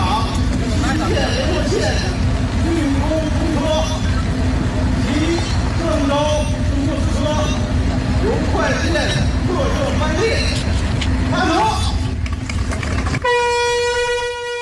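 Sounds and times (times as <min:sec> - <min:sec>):
China-Europe freight train with e-commerce parcels pulling out of Zhengzhou International Land Port: 0:00.0 - 0:14.6
China-Europe freight train horn blast: 0:13.2 - 0:14.6.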